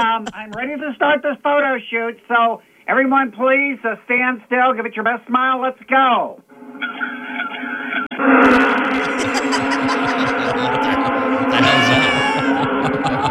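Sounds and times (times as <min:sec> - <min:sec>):
speech: 0:00.0 - 0:07.0
laughter: 0:06.8 - 0:13.2
person imitating students stung by yellow jackets: 0:08.9 - 0:13.2.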